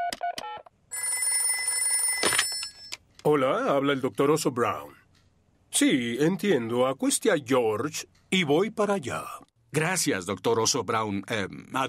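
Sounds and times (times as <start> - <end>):
telephone ringing: 0.0 - 3.0
speech: 3.3 - 5.0, 5.8 - 11.8.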